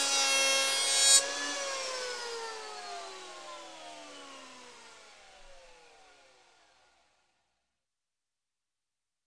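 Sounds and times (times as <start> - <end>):
electric plane power tool starting in construction: 0.0 - 5.3.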